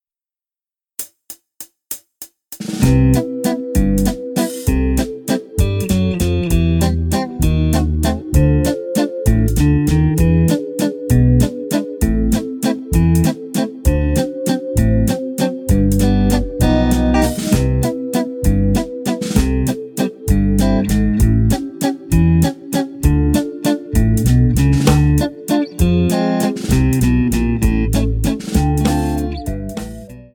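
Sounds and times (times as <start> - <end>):
musette waltz: 2.9 - 30.3.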